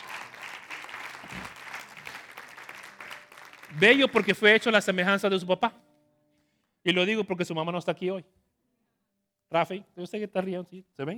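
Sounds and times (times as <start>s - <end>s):
audience applause: 0.0s - 4.7s
speech: 3.7s - 5.9s, 6.8s - 8.4s, 9.5s - 11.1s.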